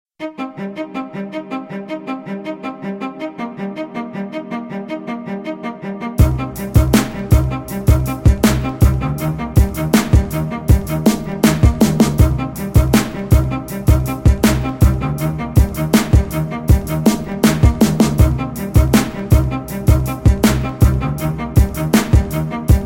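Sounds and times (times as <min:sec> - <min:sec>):
violin: 0:00.2 - 0:22.8.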